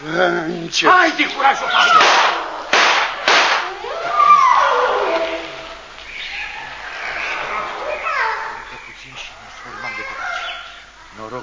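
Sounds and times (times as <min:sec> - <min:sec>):
excited high voices: 0:00.0 - 0:11.4
speech: 0:00.1 - 0:02.4
gunshots: 0:01.8 - 0:03.8.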